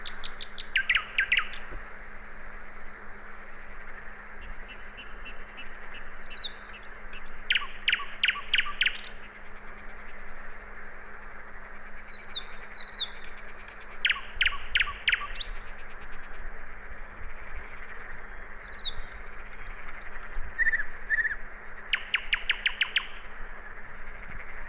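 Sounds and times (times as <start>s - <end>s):
common nightingale song of loud repeated notes and soft whistles: 0.0s - 1.8s, 4.2s - 9.4s, 11.4s - 16.4s, 17.8s - 23.3s.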